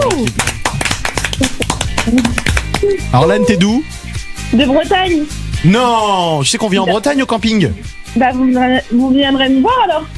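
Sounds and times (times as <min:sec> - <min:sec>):
applause: 0:00.0 - 0:02.9
speech: 0:00.1 - 0:00.6, 0:02.9 - 0:10.1.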